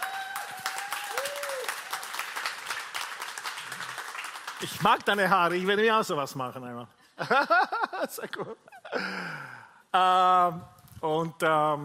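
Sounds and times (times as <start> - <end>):
audience applause: 0.0 - 5.3
speech: 4.6 - 11.8
laughter: 7.2 - 9.3.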